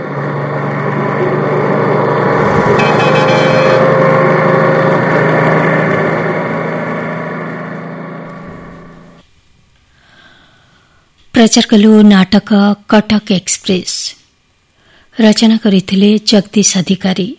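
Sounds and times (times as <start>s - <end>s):
bus engine running during a night journey: 0.0s - 9.2s
speech: 11.4s - 14.1s, 15.2s - 17.3s.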